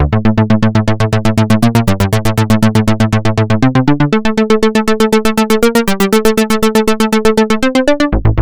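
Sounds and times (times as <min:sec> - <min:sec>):
synth: 0:00.1 - 0:08.3.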